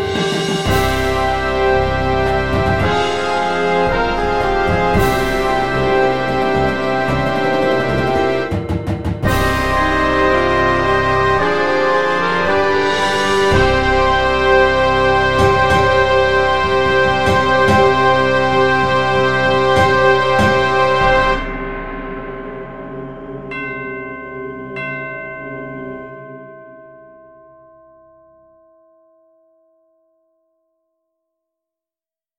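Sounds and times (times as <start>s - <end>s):
easy percussive synth: 0.0s - 24.9s.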